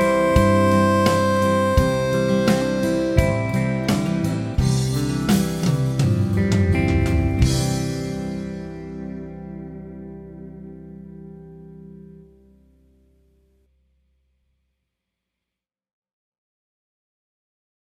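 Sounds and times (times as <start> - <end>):
harp melody in C: 0.0 - 8.5.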